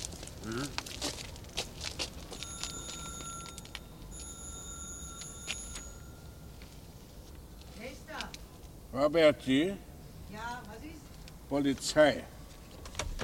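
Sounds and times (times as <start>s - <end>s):
speech: 0.5s - 0.8s, 9.0s - 9.9s, 11.5s - 12.3s
doorbell ringing: 2.4s - 6.6s.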